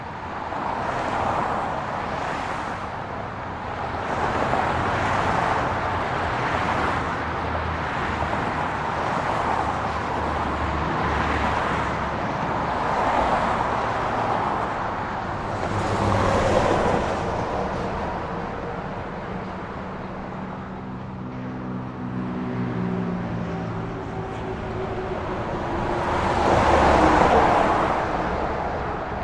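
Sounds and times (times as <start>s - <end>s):
heavy highway traffic: 0.0s - 29.2s.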